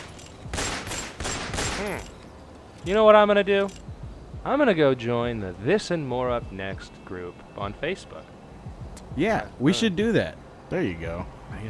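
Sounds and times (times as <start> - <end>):
gunfire from police officers shooting: 0.0 - 2.1
speech: 1.8 - 2.2, 2.8 - 3.8, 4.4 - 11.6.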